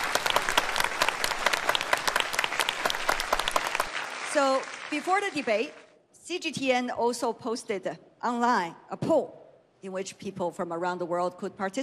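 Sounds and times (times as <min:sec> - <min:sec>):
audience applause: 0:00.0 - 0:05.8
speech: 0:04.4 - 0:11.8.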